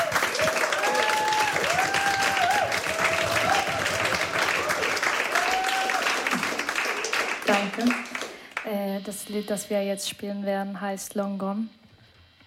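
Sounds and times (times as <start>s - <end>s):
faint whistles and cheers: 0.0s - 7.7s
sustained applause from a sizeable audience: 0.0s - 8.6s
speech: 7.6s - 8.0s, 8.7s - 11.8s.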